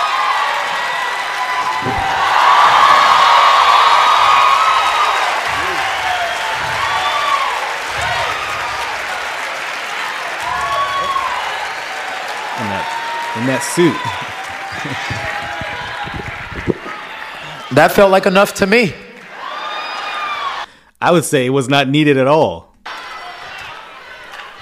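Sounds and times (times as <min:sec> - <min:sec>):
whoops and shouted voices: 0:00.0 - 0:09.2, 0:10.4 - 0:17.7, 0:19.3 - 0:20.7
crowd applauding: 0:00.0 - 0:20.7, 0:22.9 - 0:24.6
laughter: 0:01.6 - 0:09.5, 0:12.4 - 0:17.8
speech: 0:13.5 - 0:14.2, 0:17.8 - 0:19.0, 0:21.0 - 0:22.7.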